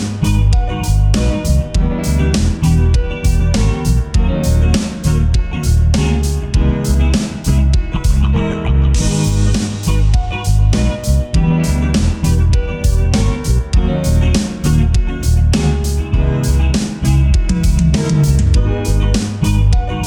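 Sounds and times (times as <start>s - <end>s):
chill funk music tuned to 432 Hz: 0.0s - 20.0s.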